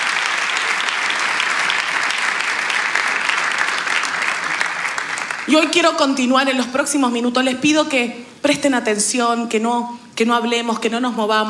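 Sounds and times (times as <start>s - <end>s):
audience applause: 0.0s - 5.9s
speech: 5.5s - 11.4s.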